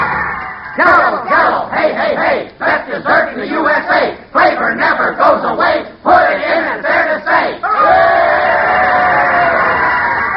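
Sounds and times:
crowd cheering: 0:00.0 - 0:02.2, 0:06.2 - 0:10.3
speech: 0:00.8 - 0:08.3.

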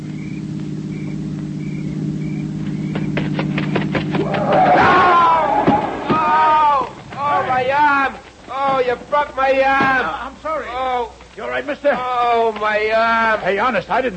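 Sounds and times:
low engine drone: 0:00.0 - 0:08.4
voices talking excitedly: 0:05.3 - 0:14.1
speech: 0:09.2 - 0:14.1.

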